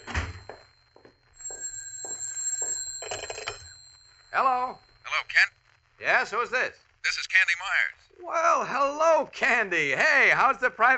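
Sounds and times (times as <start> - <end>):
telephone bell ringing: 0.0 - 6.0
speech: 4.4 - 10.9.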